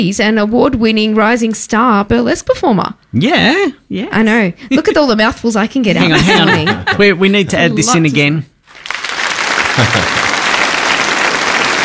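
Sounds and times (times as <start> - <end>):
speech: 0.0 - 8.5, 9.8 - 10.2
laughter: 6.0 - 7.4, 9.7 - 10.4
applause sound effect: 8.7 - 11.8.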